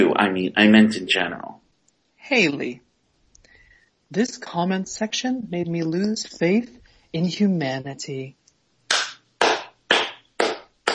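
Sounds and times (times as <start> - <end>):
speech: 0.0 - 1.6, 2.2 - 2.8, 4.1 - 8.4
slow hand clapping in agreement: 8.9 - 10.9.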